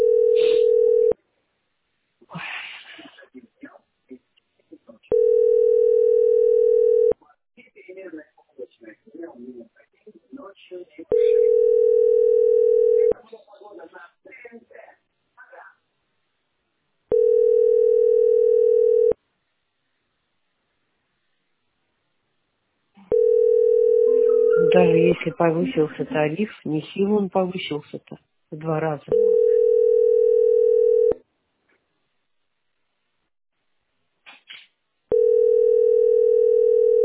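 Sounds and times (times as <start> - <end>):
telephone dial tone: 0.0 - 1.2, 5.1 - 7.2, 11.1 - 13.1, 17.1 - 19.2, 23.1 - 25.2, 29.1 - 31.2, 35.1 - 37.0
speech: 25.4 - 29.4.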